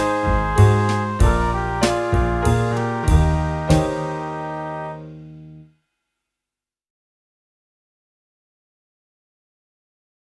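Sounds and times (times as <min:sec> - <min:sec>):
saxophone: 0:00.0 - 0:05.4.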